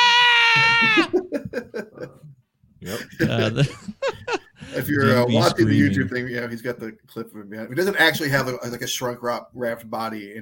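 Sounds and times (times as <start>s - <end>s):
person screaming: 0.0s - 1.2s
laughter: 0.6s - 2.3s, 2.9s - 5.6s
speech: 2.8s - 10.4s.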